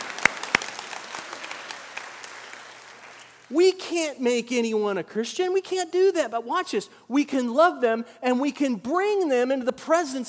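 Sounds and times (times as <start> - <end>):
audience clapping: 0.0 - 3.5
speech: 3.5 - 10.2.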